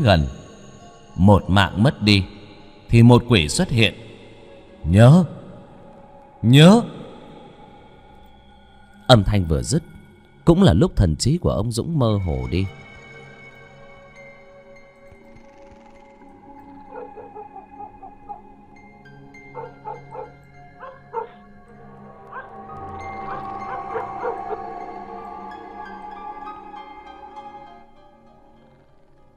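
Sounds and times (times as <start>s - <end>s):
speech: 0.0s - 0.4s, 1.2s - 2.3s, 2.9s - 4.0s, 4.8s - 5.4s, 6.4s - 7.0s, 9.1s - 12.8s
dogs barking in the night: 16.7s - 18.5s, 19.5s - 21.5s, 22.2s - 25.0s.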